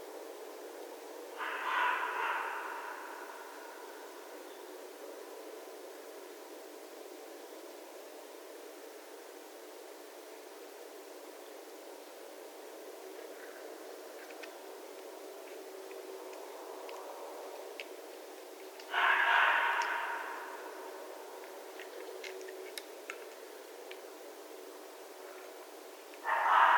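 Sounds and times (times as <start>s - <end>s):
red fox calling: 1.4s - 4.1s, 18.8s - 21.2s, 26.2s - 26.7s.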